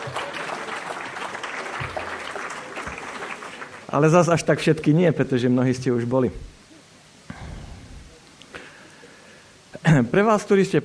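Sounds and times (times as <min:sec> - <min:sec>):
audience applause: 0:00.0 - 0:04.1
speech: 0:03.9 - 0:06.5, 0:10.1 - 0:10.8.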